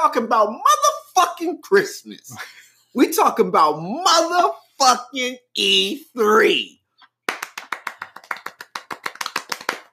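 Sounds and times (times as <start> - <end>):
speech: 0.0 - 6.8
hands clapping: 7.0 - 9.9.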